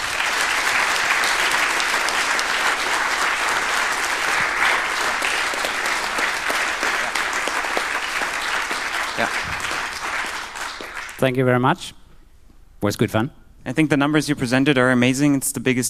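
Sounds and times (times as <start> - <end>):
audience applause: 0.0 - 11.2
speech: 11.2 - 12.0, 12.8 - 15.8.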